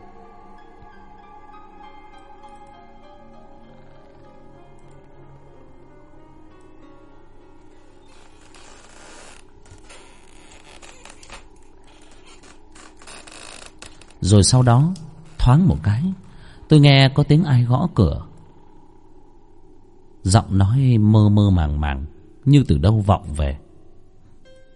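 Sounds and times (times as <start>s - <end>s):
creaking: 3.6s - 5.1s, 7.6s - 16.5s
speech: 14.3s - 18.3s, 20.2s - 23.6s.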